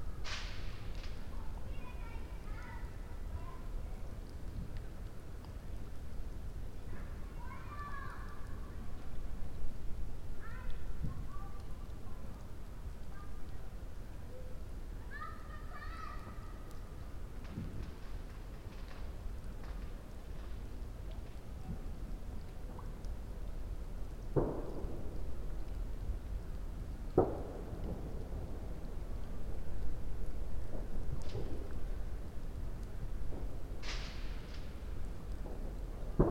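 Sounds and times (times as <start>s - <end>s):
campfire crackling: 0.0s - 36.3s
raindrops: 0.0s - 36.3s
fireworks: 0.2s - 1.3s, 24.3s - 25.3s, 27.1s - 28.9s, 30.6s - 31.9s, 33.2s - 36.3s
child: 1.3s - 4.2s, 6.8s - 9.1s, 10.4s - 16.7s, 21.1s - 23.1s.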